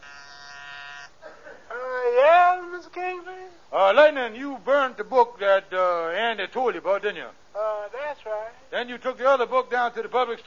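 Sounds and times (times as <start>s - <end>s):
intercom buzzer: 0.0s - 1.1s
speech: 3.9s - 10.4s.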